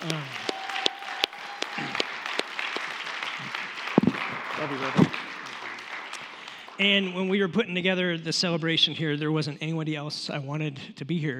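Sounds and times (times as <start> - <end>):
speech: 0.0 - 0.4, 4.6 - 5.2, 6.8 - 11.3
audience applause: 0.0 - 7.4.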